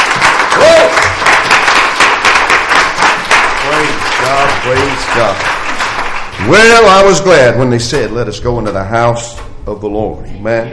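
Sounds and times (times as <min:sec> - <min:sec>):
audience hand clapping: 0:00.0 - 0:08.0
speech: 0:04.7 - 0:05.5, 0:06.4 - 0:10.7.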